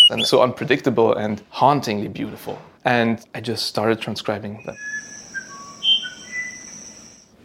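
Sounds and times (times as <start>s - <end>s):
bird song calls: 0.0s - 0.3s, 4.6s - 7.2s
speech: 0.1s - 5.0s.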